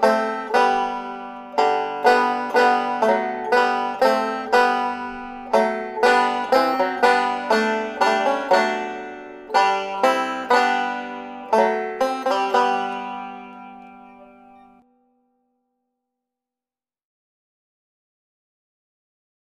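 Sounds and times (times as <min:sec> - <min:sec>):
banjo: 0:00.0 - 0:14.8.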